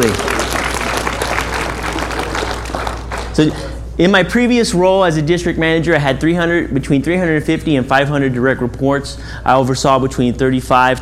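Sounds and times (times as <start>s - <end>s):
audience applause: 0.0s - 3.5s
speech: 3.4s - 10.9s.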